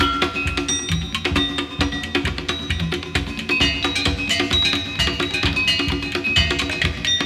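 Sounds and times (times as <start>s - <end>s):
abstract world fusion percussion combos: 0.0s - 7.2s.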